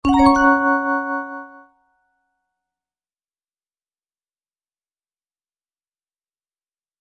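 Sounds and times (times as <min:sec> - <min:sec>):
iPhone alert tone: 0:00.0 - 0:01.7.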